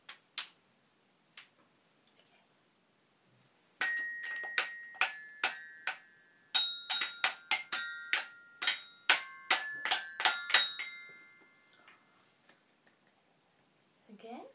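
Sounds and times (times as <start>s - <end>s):
glockenspiel: 3.8s - 11.9s.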